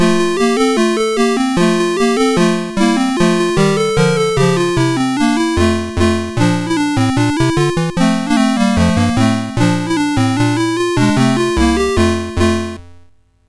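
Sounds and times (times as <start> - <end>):
chiptune music on MOS6581R3 sound chip: 0.0 - 12.9.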